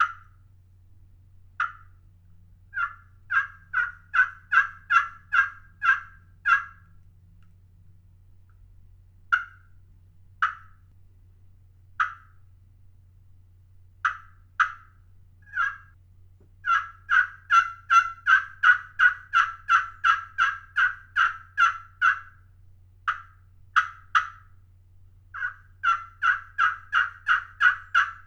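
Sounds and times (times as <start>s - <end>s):
slate-over-glass pot turkey call yelps: 0.0s - 0.4s, 1.6s - 2.0s, 2.7s - 7.0s, 9.3s - 9.8s, 10.4s - 10.8s, 12.0s - 12.4s, 14.0s - 16.0s, 16.6s - 22.4s, 23.1s - 24.6s, 25.3s - 28.2s
low steady hum: 0.0s - 28.2s.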